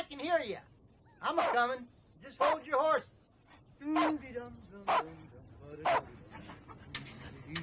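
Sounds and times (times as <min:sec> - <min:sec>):
speech: 0:00.1 - 0:03.2
dog barking: 0:01.4 - 0:01.6, 0:02.4 - 0:02.6, 0:04.0 - 0:04.2, 0:04.9 - 0:05.1, 0:05.8 - 0:06.2.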